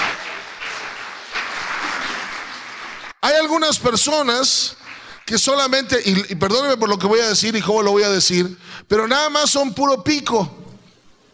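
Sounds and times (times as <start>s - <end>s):
audience applauding: 0.0s - 3.7s, 4.3s - 5.7s
speech: 3.4s - 10.6s.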